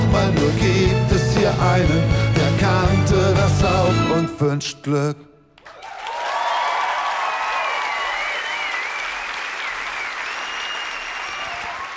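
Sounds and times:
speech: 0.2s - 2.3s, 3.6s - 5.3s
audience applause: 5.6s - 11.9s
whistling and cheering: 6.0s - 11.9s.

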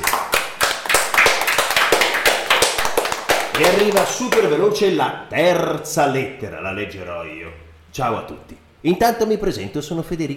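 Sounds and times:
applause, hand clapping: 0.0s - 4.6s
speech: 3.6s - 10.3s.

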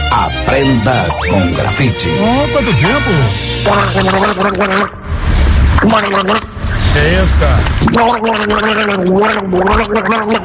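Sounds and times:
speech: 0.1s - 5.0s, 5.8s - 10.4s
person gargling: 3.7s - 5.0s, 7.8s - 10.4s.

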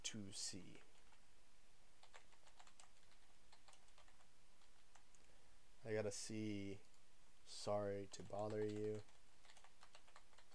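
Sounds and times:
steady hiss: 0.0s - 10.5s
speech: 0.1s - 0.9s, 5.8s - 6.9s, 7.5s - 9.1s
keyboard typing: 2.0s - 5.2s, 8.2s - 10.5s.

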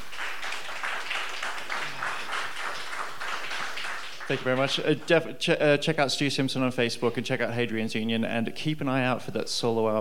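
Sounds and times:
audience applause for a musician: 0.0s - 5.3s
speech: 4.3s - 9.9s.

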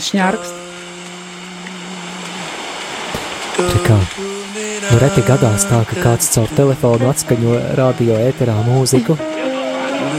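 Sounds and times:
speech: 0.0s - 0.6s, 3.6s - 10.1s
low hum: 0.0s - 9.2s
sea surf rushing: 0.0s - 10.1s.

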